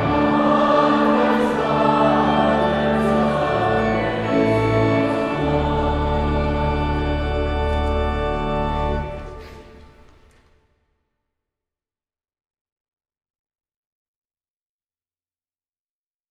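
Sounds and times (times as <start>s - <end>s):
audience singing a Christmas carol: 0.0s - 9.8s.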